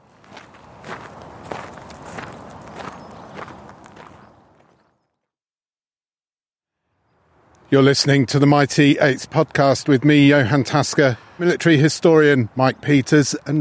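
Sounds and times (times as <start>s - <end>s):
footsteps crunching among graves in the cemetery at Cambridge: 0.0s - 5.0s
speech: 7.7s - 13.6s.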